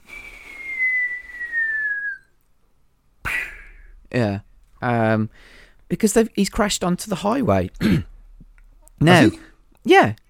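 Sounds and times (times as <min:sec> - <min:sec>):
person whistling a cartoon-style falling tone: 0:00.0 - 0:02.4
speech: 0:04.2 - 0:08.1, 0:09.0 - 0:10.2.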